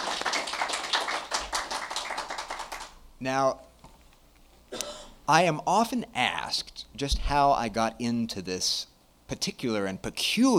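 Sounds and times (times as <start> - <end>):
audience applause: 0.0 - 3.0
speech: 3.2 - 3.7, 4.7 - 10.5.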